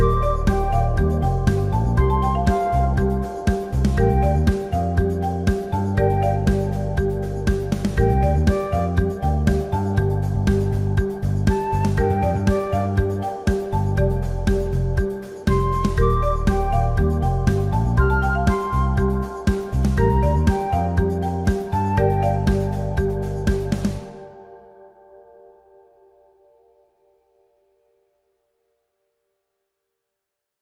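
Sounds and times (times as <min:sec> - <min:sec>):
marimba playing an instrumental cover: 0:00.0 - 0:24.1.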